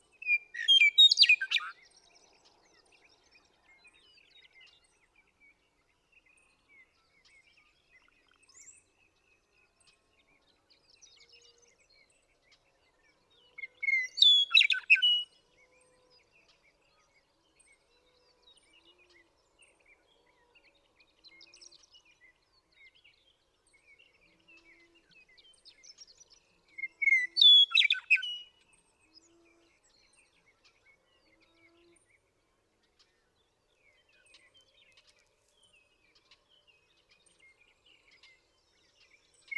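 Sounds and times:
western meadowlark singing: 0.2 - 1.8, 13.6 - 15.3, 25.2 - 28.7.

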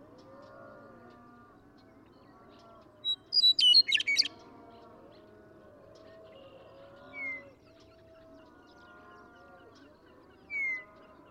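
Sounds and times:
western meadowlark whistling song: 3.0 - 4.3.

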